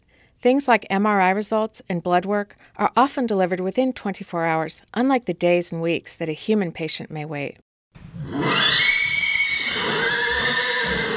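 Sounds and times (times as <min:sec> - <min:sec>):
speech: 0:00.4 - 0:07.6
chestnut Thoroughbred mare whinnying at Lane's End Farm near Lexington: 0:08.1 - 0:11.1.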